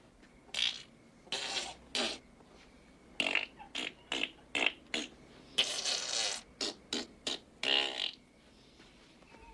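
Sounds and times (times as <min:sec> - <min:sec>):
fart noises: 0:00.5 - 0:02.3, 0:03.2 - 0:08.3.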